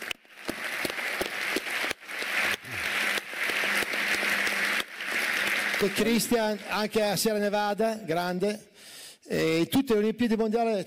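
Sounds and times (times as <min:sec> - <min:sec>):
audience applause: 0:00.0 - 0:07.2
speech: 0:05.8 - 0:08.7, 0:09.3 - 0:10.8.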